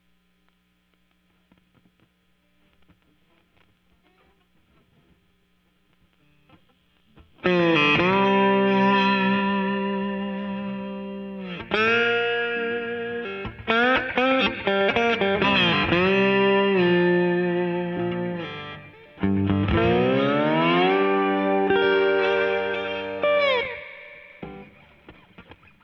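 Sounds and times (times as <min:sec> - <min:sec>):
slide guitar: 0:07.4 - 0:25.8.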